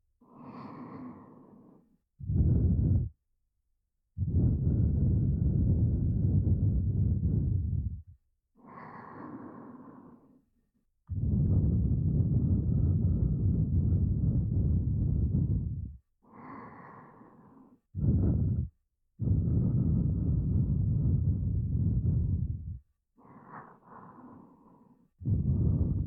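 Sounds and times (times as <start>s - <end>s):
heartbeat: 2.2s - 3.1s, 4.2s - 8.1s, 11.2s - 16.0s, 18.0s - 22.8s, 25.2s - 26.0s.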